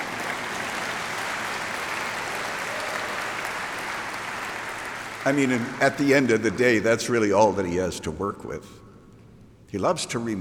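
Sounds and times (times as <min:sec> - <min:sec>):
clapping spreading into applause: 0:00.0 - 0:05.5
speech: 0:05.2 - 0:08.8, 0:09.7 - 0:10.3.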